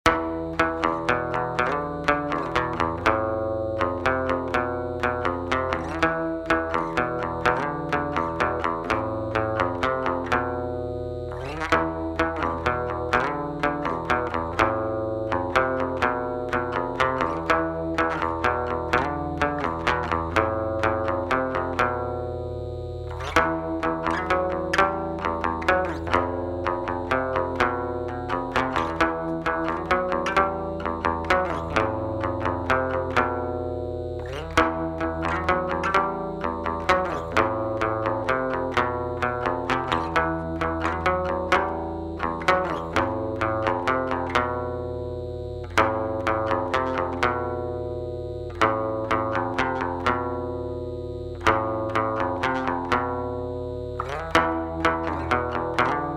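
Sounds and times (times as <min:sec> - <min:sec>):
guitar interlude: 0:00.0 - 0:56.1.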